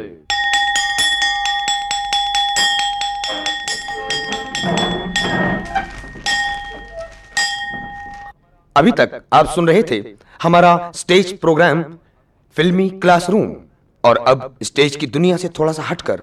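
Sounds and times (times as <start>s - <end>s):
speech: 0.0s - 0.3s, 8.8s - 16.2s
school recess bell ringing: 0.3s - 8.3s.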